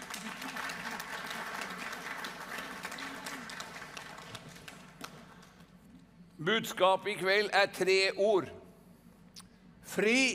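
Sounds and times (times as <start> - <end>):
audience applause: 0.0 - 5.5
speech: 6.4 - 8.6, 10.0 - 10.3.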